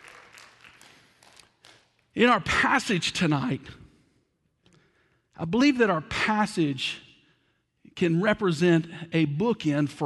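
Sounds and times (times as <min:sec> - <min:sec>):
few people clapping: 0:00.0 - 0:02.1
speech: 0:02.2 - 0:03.8, 0:05.4 - 0:07.0, 0:08.0 - 0:10.0.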